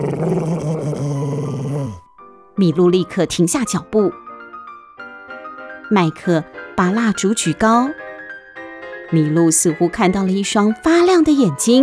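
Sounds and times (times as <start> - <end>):
beast growling: 0.0 - 2.1
speech: 2.6 - 4.2, 5.9 - 8.0, 9.1 - 11.8.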